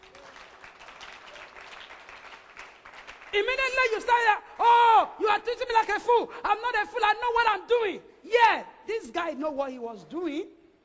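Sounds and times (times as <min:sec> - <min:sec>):
audience applause: 0:00.0 - 0:03.5
speech: 0:03.3 - 0:10.6.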